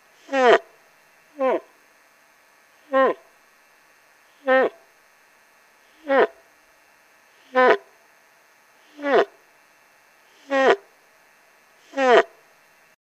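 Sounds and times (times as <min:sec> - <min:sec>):
young bull moose calling in rut: 0:00.3 - 0:00.6, 0:01.4 - 0:01.7, 0:02.9 - 0:03.2, 0:04.4 - 0:04.8, 0:06.0 - 0:06.4, 0:07.4 - 0:07.8, 0:08.9 - 0:09.3, 0:10.4 - 0:10.8, 0:11.9 - 0:12.3.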